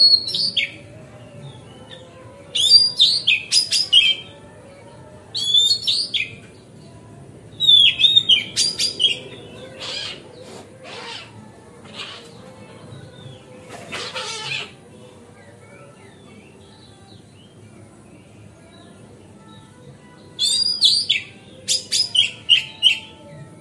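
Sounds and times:
Oriental magpie-robin song: 0:00.0 - 0:00.8, 0:01.5 - 0:04.3, 0:05.3 - 0:06.4, 0:07.6 - 0:12.4, 0:20.4 - 0:23.2.

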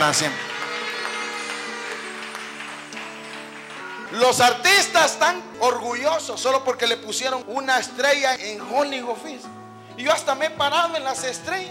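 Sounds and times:
speech: 0:00.0 - 0:00.5, 0:04.1 - 0:11.6
crowd clapping: 0:00.0 - 0:05.2.

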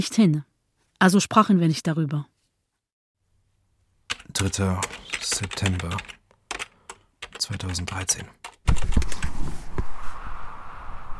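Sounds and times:
speech: 0:00.0 - 0:02.3, 0:04.4 - 0:06.2, 0:07.4 - 0:08.9
typing on a computer keyboard: 0:04.1 - 0:09.3.

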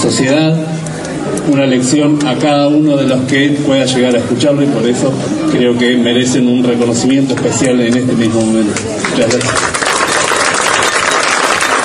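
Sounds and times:
speech: 0:00.0 - 0:09.8
dense applause from neighbours: 0:08.8 - 0:11.8.

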